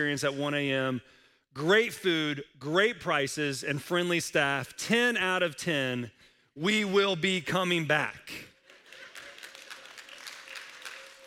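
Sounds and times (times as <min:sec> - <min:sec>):
speech: 0:00.0 - 0:08.5
audience clapping: 0:08.5 - 0:11.2.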